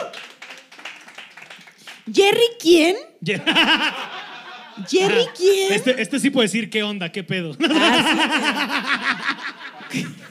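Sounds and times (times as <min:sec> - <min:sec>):
audience applause: 0:00.0 - 0:02.0
speech: 0:02.1 - 0:04.1, 0:04.8 - 0:10.2
laughter: 0:03.3 - 0:06.2, 0:07.6 - 0:10.2.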